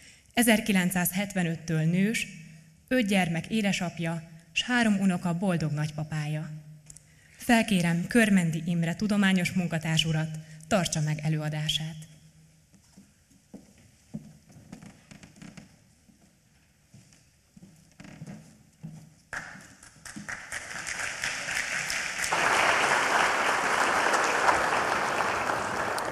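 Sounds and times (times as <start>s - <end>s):
speech: 0.4s - 6.7s, 7.4s - 12.1s
crowd applauding: 19.4s - 26.1s.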